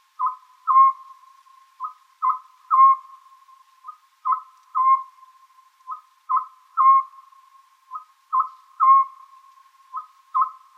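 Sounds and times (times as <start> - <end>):
Oriental scops owl hooting: 0.2 - 10.7.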